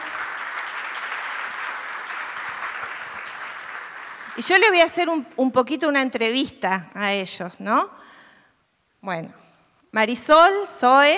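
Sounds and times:
audience applause: 0.0s - 4.7s
speech: 4.4s - 8.0s, 9.0s - 11.1s.

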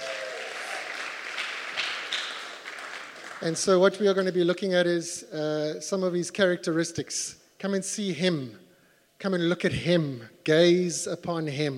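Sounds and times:
crowd applause: 0.0s - 3.6s
speech: 3.4s - 8.6s, 9.2s - 11.7s.

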